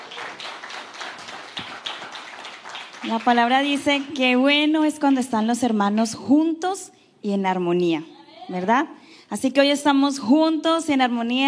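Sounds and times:
crowd applauding: 0.0 - 4.2
speech: 3.0 - 11.4.

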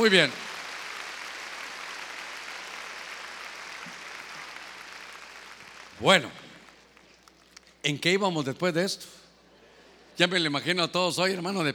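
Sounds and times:
speech: 0.0 - 0.5, 6.0 - 6.4, 7.8 - 9.2, 10.2 - 11.7
audience clapping: 0.0 - 7.6.

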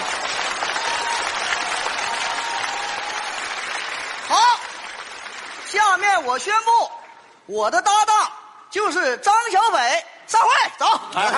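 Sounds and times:
audience applause: 0.0 - 6.2
speech: 6.2 - 6.9, 7.5 - 8.2, 8.8 - 11.3.

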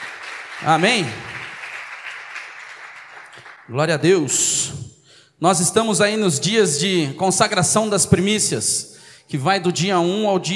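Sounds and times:
audience applause: 0.0 - 3.7
speech: 0.6 - 1.3, 3.7 - 4.8, 5.4 - 10.5.

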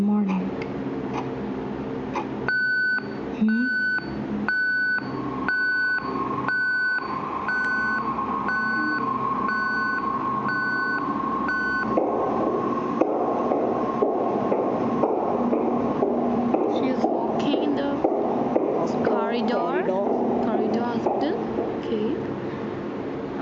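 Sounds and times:
constant low hum: 0.0 - 23.3
hospital patient call bell beeping: 2.5 - 12.0.

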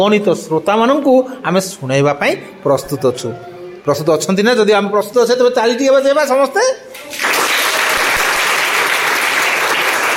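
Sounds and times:
speech: 0.0 - 7.3
audience applause at the end of a radio programme episode: 7.0 - 10.1.

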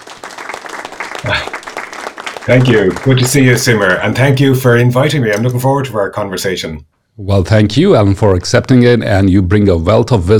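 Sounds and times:
applause: 0.0 - 4.5
speech: 1.2 - 1.5, 2.5 - 10.3.

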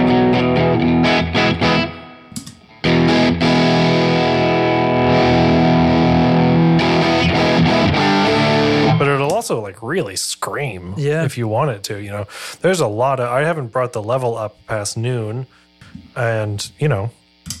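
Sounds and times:
electric guitar through clean Vox amp: 0.0 - 9.5
speech: 9.5 - 17.2.

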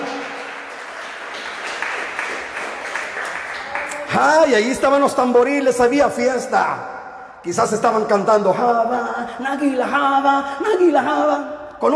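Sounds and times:
audience applause: 0.0 - 4.4
speech: 4.2 - 11.9.

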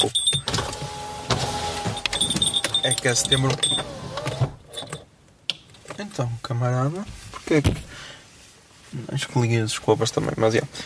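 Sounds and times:
electric car windows whirring open: 0.4 - 4.7
speech: 2.9 - 4.0, 6.1 - 7.9, 8.9 - 10.8.

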